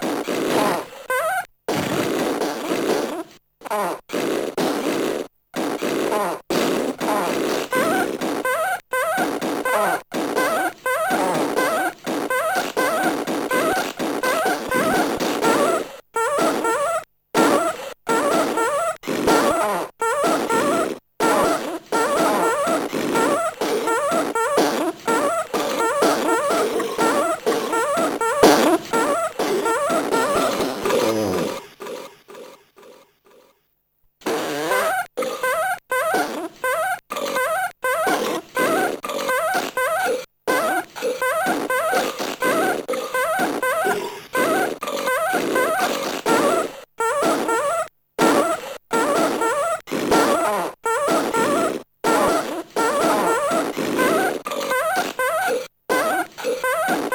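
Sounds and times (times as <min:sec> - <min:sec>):
fart and burp song: 0:00.0 - 0:33.6, 0:34.2 - 0:57.1.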